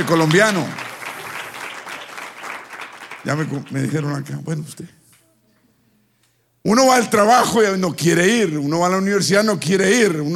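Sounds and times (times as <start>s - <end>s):
speech: 0.0s - 0.8s, 3.2s - 5.0s, 6.6s - 10.3s
audience applause: 0.0s - 3.9s.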